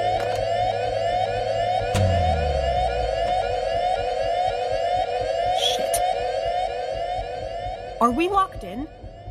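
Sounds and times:
station lockdown alarm blaring: 0:00.0 - 0:09.1
sharp thud: 0:02.0 - 0:03.4
speech: 0:08.0 - 0:09.0.

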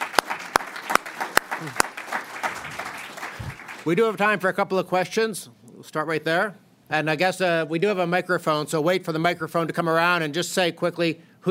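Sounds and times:
crowd applauding after a talk: 0:00.0 - 0:04.1
speech: 0:01.6 - 0:01.9, 0:03.8 - 0:11.4.

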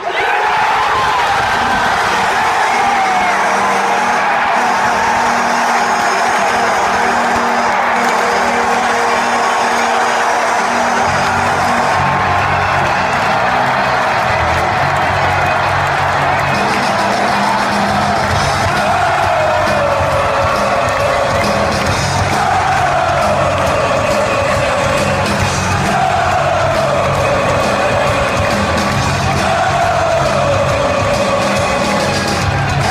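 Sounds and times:
hockey arena crowd cheering and whooping: 0:00.0 - 0:32.8
hockey arena goal horn blaring: 0:01.9 - 0:21.2.

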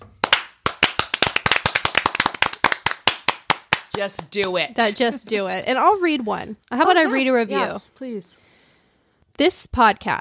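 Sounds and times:
people clapping: 0:00.1 - 0:05.0
speech: 0:04.0 - 0:08.4, 0:09.4 - 0:10.1.

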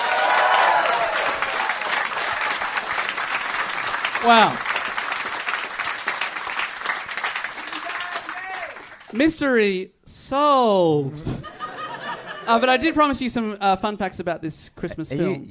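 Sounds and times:
audience applause: 0:00.0 - 0:09.2
speech: 0:04.2 - 0:04.7, 0:09.2 - 0:11.3, 0:12.5 - 0:15.5
laughter: 0:11.2 - 0:12.9.

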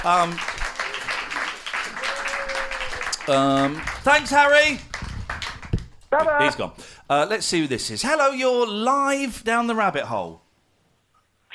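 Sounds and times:
speech: 0:00.0 - 0:00.6, 0:03.2 - 0:04.9, 0:06.1 - 0:10.4
audience applause: 0:00.0 - 0:06.6.

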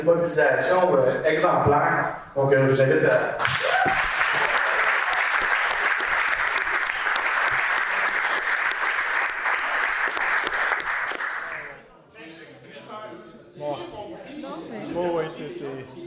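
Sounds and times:
speech: 0:00.0 - 0:04.1
audience applauding: 0:03.4 - 0:11.8.

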